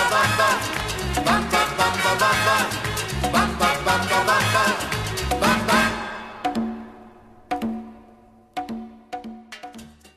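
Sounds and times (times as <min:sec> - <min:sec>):
latin rock song in stereo: 0:00.0 - 0:08.1.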